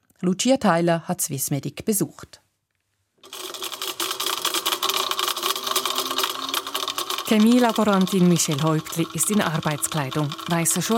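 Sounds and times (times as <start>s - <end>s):
speech: 0.2s - 2.4s, 7.3s - 10.9s
laboratory grinding cup crushing tablets into powder at Swissmedic: 3.2s - 10.9s.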